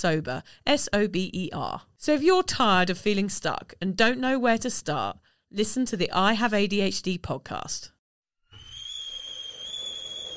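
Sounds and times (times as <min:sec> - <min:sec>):
speech: 0:00.0 - 0:08.0
boiling kettle whistling: 0:08.5 - 0:10.3.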